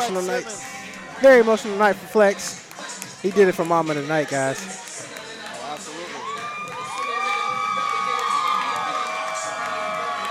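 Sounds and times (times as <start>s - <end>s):
speech: 0.0s - 2.6s, 3.2s - 4.8s
large crowd cheering wildly: 6.1s - 10.2s.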